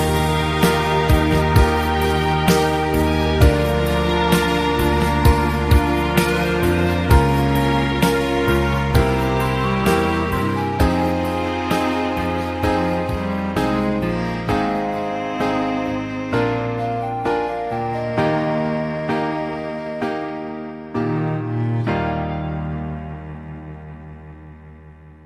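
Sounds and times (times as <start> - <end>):
instrumental music: 0.0 - 25.2.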